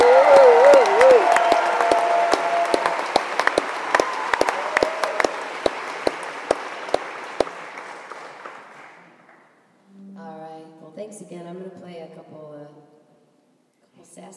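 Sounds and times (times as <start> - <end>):
audience applause: 0.0 - 9.4
crowd whoops and cheers: 0.0 - 9.4.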